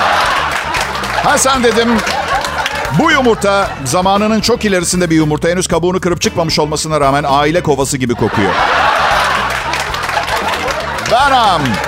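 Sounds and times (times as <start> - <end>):
canned applause sound effect: 0.0 - 4.1, 8.4 - 11.8
laughter: 0.6 - 3.8, 8.2 - 11.8
speech: 1.2 - 2.2, 2.9 - 8.9, 11.1 - 11.8.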